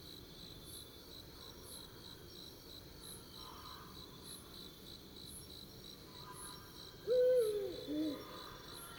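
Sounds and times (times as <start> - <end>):
Eurasian eagle-owl hooting: 7.1 - 8.5.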